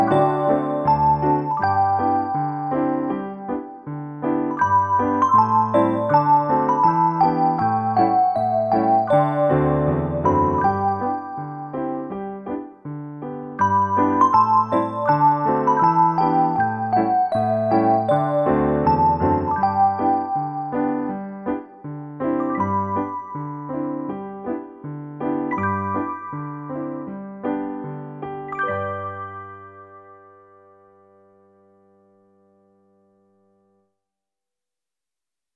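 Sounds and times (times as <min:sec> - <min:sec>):
soft bell tone in G: 0:00.0 - 0:03.7, 0:04.5 - 0:11.9, 0:13.6 - 0:21.4, 0:22.3 - 0:24.4, 0:25.5 - 0:27.4, 0:28.5 - 0:31.2.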